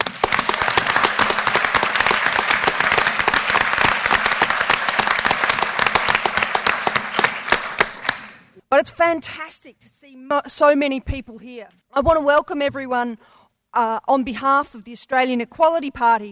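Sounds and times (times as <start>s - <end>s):
audience applause welcoming a speaker at an Australian Equality Party discussion event: 0.0s - 8.5s
speech: 8.8s - 16.2s.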